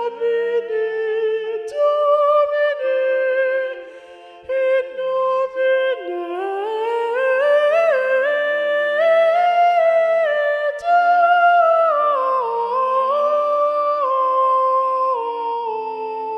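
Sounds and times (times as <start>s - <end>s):
soprano singing: 0.0s - 16.3s.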